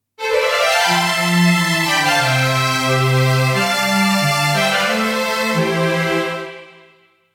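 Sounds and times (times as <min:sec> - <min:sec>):
strings: 0:00.2 - 0:07.0.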